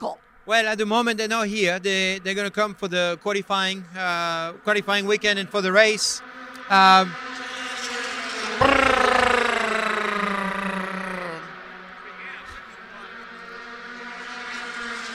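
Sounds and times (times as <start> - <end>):
speech: 0.0 - 7.3
Indy Lights race cars passing: 4.0 - 15.1.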